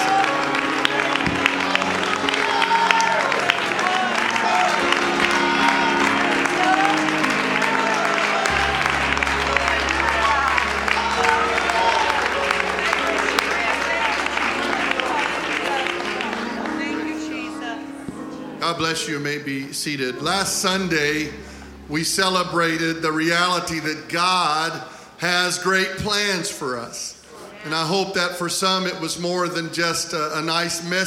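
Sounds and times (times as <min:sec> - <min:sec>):
audience ovation: 0:00.0 - 0:18.9
speech: 0:18.9 - 0:31.0.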